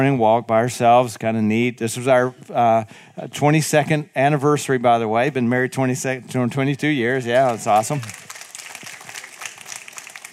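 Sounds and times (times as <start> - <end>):
speech: 0.0 - 8.2
audience applause: 7.4 - 10.3.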